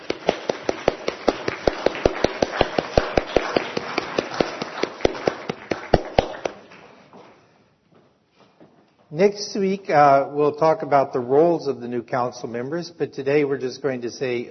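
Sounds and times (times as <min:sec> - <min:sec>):
audience applause for new church council: 0:00.0 - 0:07.0
speech: 0:09.2 - 0:14.4.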